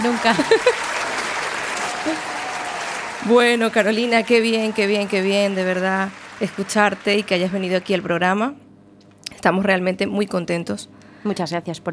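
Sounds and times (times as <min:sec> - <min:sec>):
speech: 0:00.0 - 0:01.1, 0:02.0 - 0:02.4, 0:03.2 - 0:08.6, 0:09.4 - 0:11.9
vocal whoops: 0:00.0 - 0:05.8
laughter: 0:00.0 - 0:08.0
crowd applause sound effect: 0:00.0 - 0:08.3.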